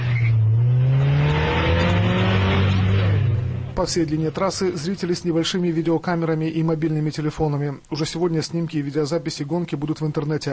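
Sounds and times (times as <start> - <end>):
tire squeal: 0.0 - 3.3
race car engines roaring as they accelerate off the start: 0.0 - 5.5
speech: 3.8 - 10.5.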